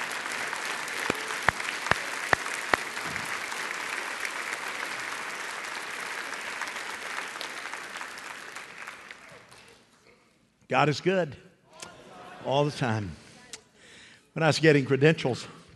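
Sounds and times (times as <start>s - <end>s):
audience applause: 0.0s - 9.9s
speech: 10.7s - 11.5s, 12.4s - 13.2s, 14.4s - 15.6s.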